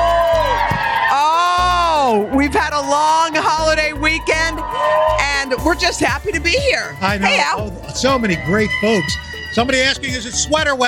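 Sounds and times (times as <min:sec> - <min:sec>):
happy crowd cheering outdoors: 0:00.0 - 0:10.8
speech: 0:02.4 - 0:10.8.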